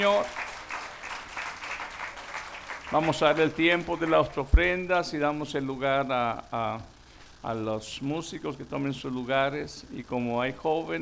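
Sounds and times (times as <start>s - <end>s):
speech: 0.0s - 0.4s, 2.9s - 10.9s
audience applause: 0.0s - 4.3s.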